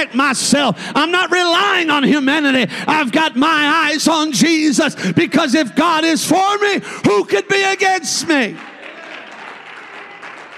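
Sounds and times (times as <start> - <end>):
speech: 0.0 - 8.7
audience clapping: 8.2 - 10.5.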